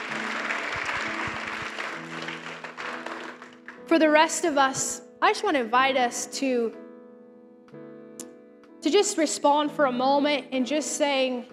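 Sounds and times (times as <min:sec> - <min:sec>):
audience clapping: 0:00.0 - 0:03.9
speech: 0:03.9 - 0:06.8, 0:08.8 - 0:11.5.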